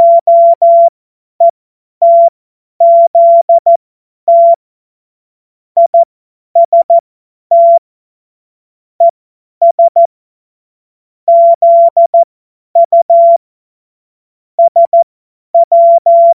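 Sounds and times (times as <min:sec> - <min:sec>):
CW Morse code beeps: 0:00.0 - 0:00.9, 0:02.0 - 0:04.6, 0:05.8 - 0:07.8, 0:09.0 - 0:10.1, 0:11.3 - 0:13.4, 0:14.6 - 0:15.0, 0:15.6 - 0:16.3.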